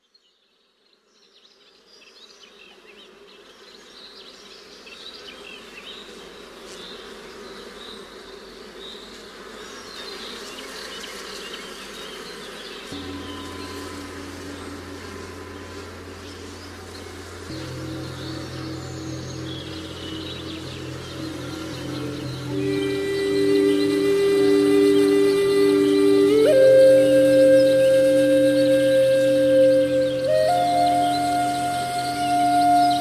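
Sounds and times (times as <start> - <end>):
shamanic drum music: 13.0 - 32.9.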